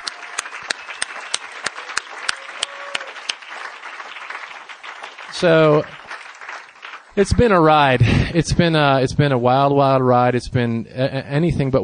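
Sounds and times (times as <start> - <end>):
audience applause: 0.0 - 8.2
speech: 5.4 - 6.0, 7.2 - 11.8.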